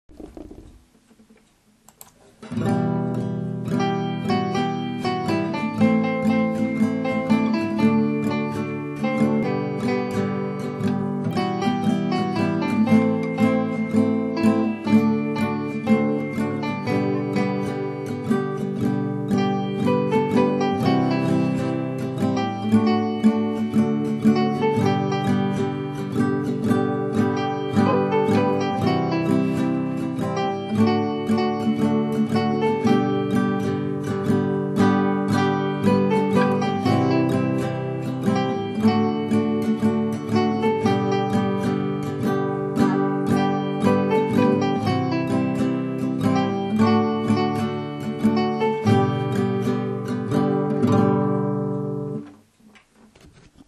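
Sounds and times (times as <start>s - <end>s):
guitar: 0.0s - 53.6s
computer music: 1.8s - 52.5s.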